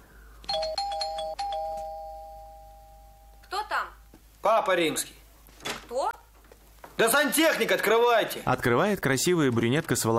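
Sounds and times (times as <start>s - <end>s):
apartment doorbell ringing: 0.5s - 3.5s
speech: 4.5s - 5.2s, 5.9s - 6.1s, 7.0s - 10.1s.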